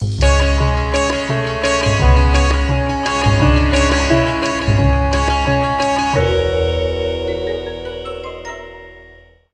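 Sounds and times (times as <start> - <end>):
baritone saxophone: 0.2 - 8.6.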